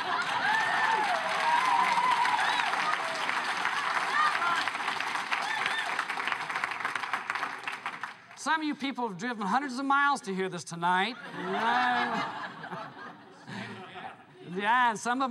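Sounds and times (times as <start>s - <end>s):
laughter: 0.0s - 1.1s, 11.1s - 14.7s
audience clapping: 0.0s - 8.6s
scattered cheers and whistles: 0.2s - 6.3s
speech: 8.5s - 12.5s, 14.6s - 15.2s.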